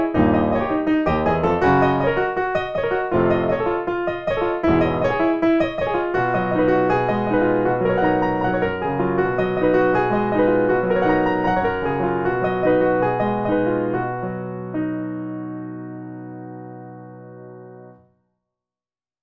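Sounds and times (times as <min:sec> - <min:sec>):
jazz music: 0:00.0 - 0:14.1.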